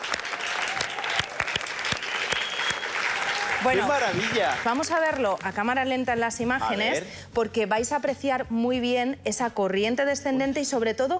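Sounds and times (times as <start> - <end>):
group applauding: 0.0 - 5.7
speech: 3.6 - 11.1.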